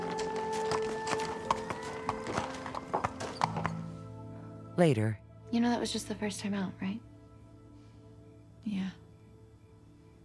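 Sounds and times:
horse hooves walking as it is led to the barn: 0:00.0 - 0:04.0
speech: 0:04.8 - 0:07.1, 0:08.6 - 0:09.0.

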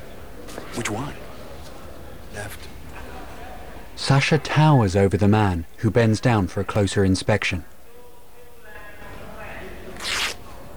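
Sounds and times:
speech: 0:00.8 - 0:01.2, 0:02.4 - 0:02.7, 0:04.0 - 0:07.7
orange overall being ripped open at the knee: 0:09.9 - 0:10.4.

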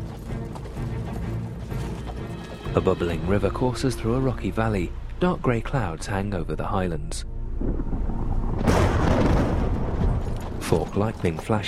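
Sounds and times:
Ninth Legion Roman soldiers' footsteps marching along a track: 0:00.0 - 0:03.2, 0:09.1 - 0:11.6
hoofbeats of Ninth Legion Roman soldiers riding along a track: 0:00.0 - 0:04.2, 0:09.8 - 0:11.6
speech: 0:02.8 - 0:08.8, 0:10.7 - 0:11.6.

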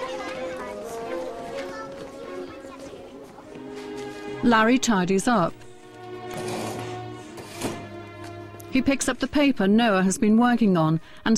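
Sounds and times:
children chattering as they leave classroom: 0:00.0 - 0:04.4
speech: 0:04.4 - 0:05.6, 0:08.8 - 0:11.3.

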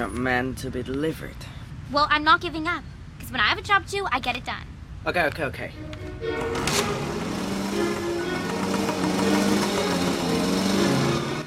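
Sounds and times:
speech: 0:00.0 - 0:07.2, 0:07.8 - 0:08.2
Vespa scooter engines droning as riders pull away: 0:06.3 - 0:11.4.

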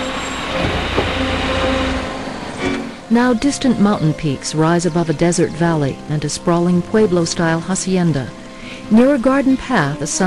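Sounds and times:
bus engine rumbling as it pulls out of station: 0:00.0 - 0:08.7
soft clunk: 0:00.6 - 0:02.1
speech: 0:03.1 - 0:10.2.

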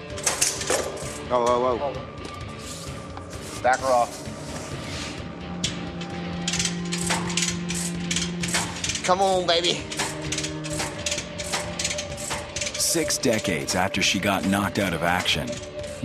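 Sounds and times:
metallic clicks and knocks of tank track pin being worked out: 0:00.1 - 0:01.2, 0:05.6 - 0:13.5
speech: 0:01.3 - 0:02.2, 0:03.6 - 0:04.3, 0:09.1 - 0:10.0, 0:12.9 - 0:16.0.

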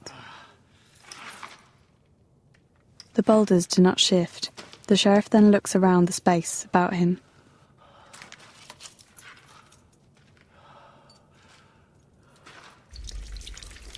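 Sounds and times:
speech: 0:03.2 - 0:07.3
water trickling and dripping through a rock fissure in a sealed cave: 0:12.9 - 0:13.9.

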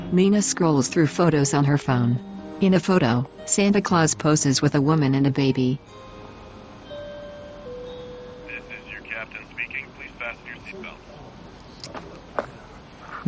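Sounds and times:
speech: 0:00.1 - 0:06.0
airplane flying over a snowy landscape: 0:05.9 - 0:13.2.

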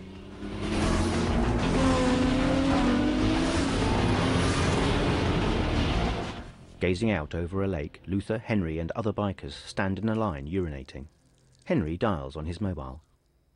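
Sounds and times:
car accelerating hard along a road in a film scene: 0:00.0 - 0:06.6
speech: 0:06.8 - 0:13.1.

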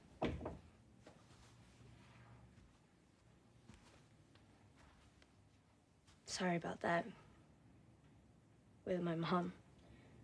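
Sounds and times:
door shutting with a solid low thud: 0:00.2 - 0:00.6
speech: 0:06.3 - 0:07.2, 0:08.9 - 0:09.6.

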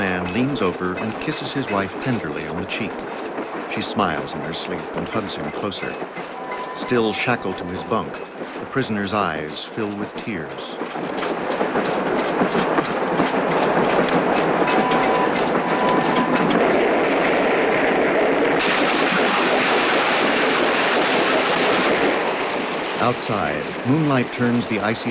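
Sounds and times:
passenger train rumbling through an icy landscape at night: 0:00.0 - 0:25.1
wheels clacking on rails: 0:00.0 - 0:25.1
speech: 0:00.4 - 0:11.9, 0:23.0 - 0:25.1.

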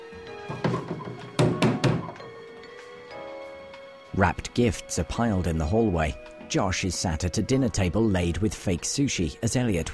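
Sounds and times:
hollow knocks on a replica TV: 0:00.4 - 0:02.3
speech: 0:04.2 - 0:09.9.

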